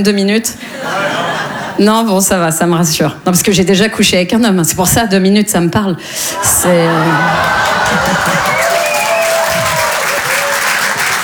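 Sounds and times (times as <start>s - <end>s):
speech: 0.0s - 8.7s
laughter: 0.6s - 1.8s, 6.4s - 11.2s
audience applause: 6.6s - 11.2s
whistles and whoops: 7.5s - 11.2s.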